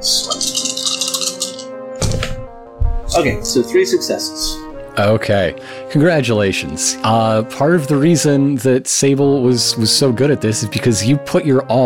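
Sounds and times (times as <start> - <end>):
speech: 0.0 - 0.3, 3.2 - 11.8
dice being rolled: 0.2 - 1.7.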